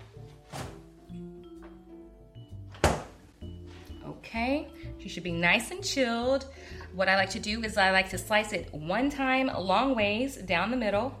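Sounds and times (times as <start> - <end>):
fridge door opening and closing: 0.0 - 1.0, 2.7 - 3.2
speech: 4.2 - 11.1.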